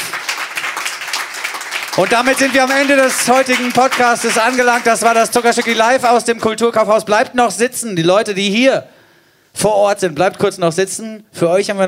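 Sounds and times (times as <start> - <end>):
audience applause after live songs: 0.0 - 6.1
speech: 2.0 - 8.9, 9.6 - 11.8.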